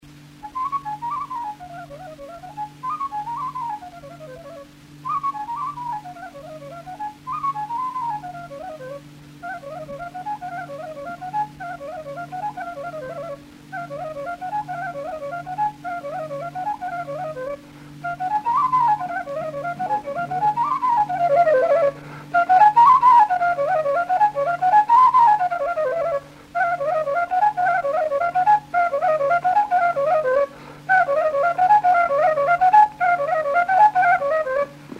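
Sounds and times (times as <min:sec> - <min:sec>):
flute playing: 0:00.4 - 0:34.9.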